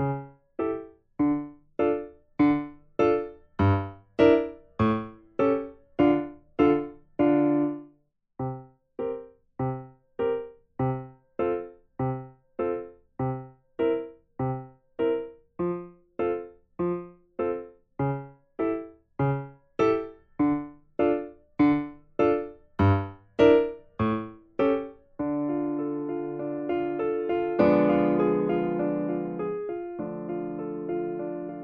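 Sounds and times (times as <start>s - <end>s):
secondo part of a piano four-hands exercise: 0.0s - 31.6s.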